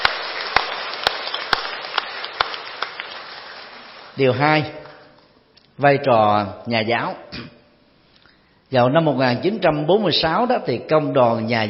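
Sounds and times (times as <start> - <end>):
audience applause: 0.0 - 5.0
speech: 4.2 - 4.8, 5.8 - 7.6, 8.7 - 11.6.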